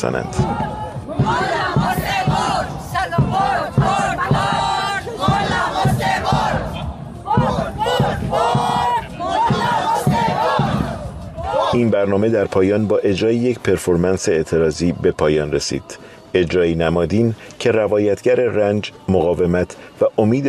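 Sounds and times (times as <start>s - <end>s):
speech: 0.0s - 1.6s, 11.7s - 20.4s
Iranian protesters chanting slogans at a march in Malmö: 0.0s - 13.6s.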